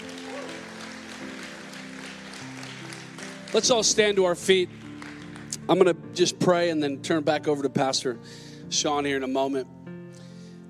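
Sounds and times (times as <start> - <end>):
audience applause: 0.0 - 5.6
speech: 3.5 - 4.8, 5.7 - 9.8.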